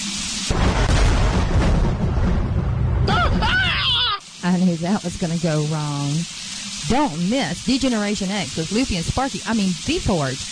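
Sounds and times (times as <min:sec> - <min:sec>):
thunder crash in an electrical storm: 0:00.5 - 0:03.7
warbling voice-like cries: 0:03.1 - 0:04.3
speech: 0:04.5 - 0:10.5.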